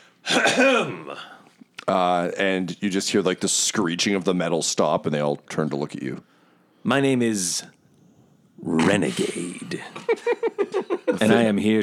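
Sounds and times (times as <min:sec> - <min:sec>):
loud throat clearing: 0:00.2 - 0:01.4
speech: 0:00.4 - 0:07.8, 0:08.6 - 0:10.5, 0:11.1 - 0:11.8
laughter: 0:09.8 - 0:11.6.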